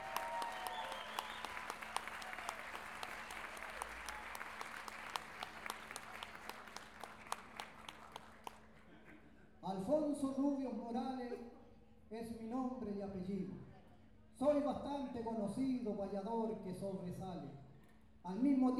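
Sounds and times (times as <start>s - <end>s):
audience applauding at a payador event in Lo Barnechea: 0.0s - 8.8s
speech: 10.2s - 13.6s, 14.4s - 17.6s, 18.2s - 18.7s.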